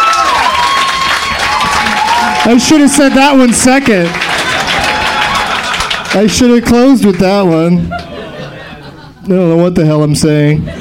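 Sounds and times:
audience applauding: 0:00.0 - 0:08.2
speech: 0:02.4 - 0:04.2, 0:06.1 - 0:08.0, 0:09.2 - 0:10.8
laughter: 0:04.0 - 0:09.4, 0:10.6 - 0:10.8.

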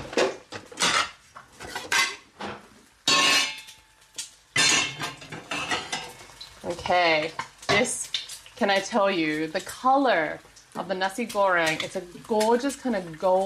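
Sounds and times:
plates and serving spoon clattering as nasi goreng is dished: 0:00.0 - 0:06.2
speech: 0:06.7 - 0:08.0, 0:08.6 - 0:13.4.

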